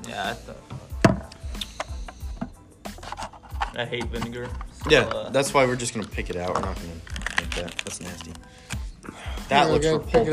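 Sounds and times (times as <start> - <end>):
speech: 0.2 - 0.8, 3.8 - 10.3
knife slitting open the seal on a package: 7.0 - 8.4.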